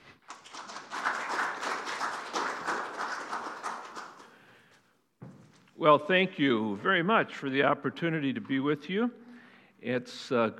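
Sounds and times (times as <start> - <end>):
church family camp audience applause welcoming a guest speaker: 0.3 - 4.4
speech: 5.8 - 9.2, 9.8 - 10.5.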